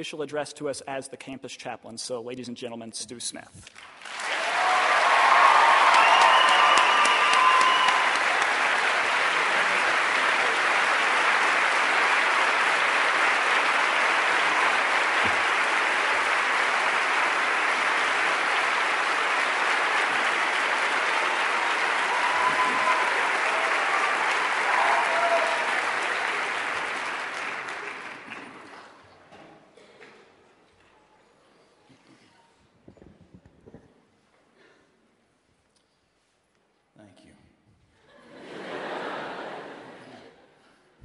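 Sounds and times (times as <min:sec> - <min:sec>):
speech: 0:00.0 - 0:04.2
audience applause welcoming a campus chaplain: 0:03.8 - 0:29.0
laughter: 0:38.0 - 0:40.5.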